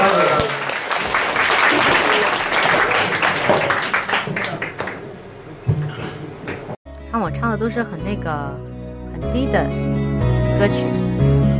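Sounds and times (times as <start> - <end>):
audience applause: 0.0 - 5.4
speech: 7.5 - 11.5.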